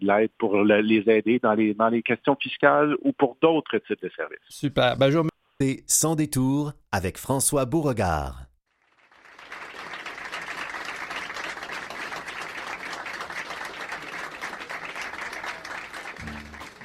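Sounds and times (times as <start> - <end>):
speech: 0.0 - 8.5
applause: 8.7 - 16.8.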